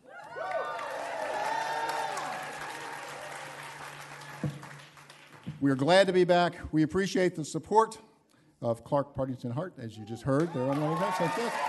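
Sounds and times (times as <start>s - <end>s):
studio audience cheering and whoops: 0.0s - 3.6s, 10.4s - 11.6s
studio audience applause: 0.0s - 5.5s, 10.3s - 11.6s
speech: 5.6s - 11.6s.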